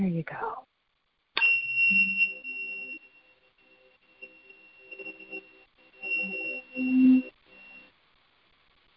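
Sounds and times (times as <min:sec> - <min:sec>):
meditation awakening bell ringing: 0:01.4 - 0:07.8.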